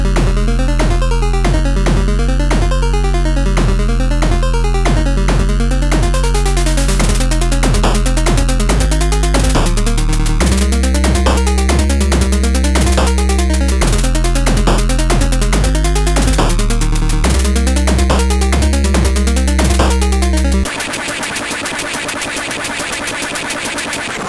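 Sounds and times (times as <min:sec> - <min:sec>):
trap beat: 0:00.1 - 0:24.2.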